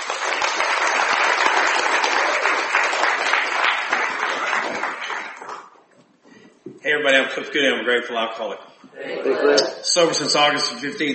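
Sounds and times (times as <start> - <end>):
audience applause welcoming workshop speakers: 0.0 - 5.8
speech: 7.0 - 11.1.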